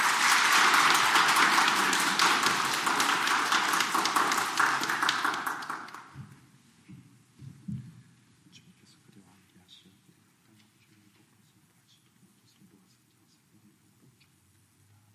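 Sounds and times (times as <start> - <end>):
welcoming applause: 0.0 - 6.2.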